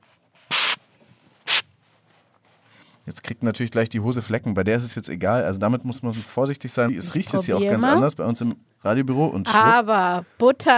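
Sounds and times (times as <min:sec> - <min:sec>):
silicone spray can spraying onto zipper: 0:00.5 - 0:00.8
speech: 0:03.1 - 0:10.7.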